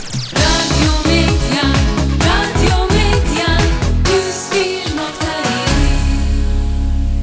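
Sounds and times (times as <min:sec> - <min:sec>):
pop music on radio: 0:00.2 - 0:07.0.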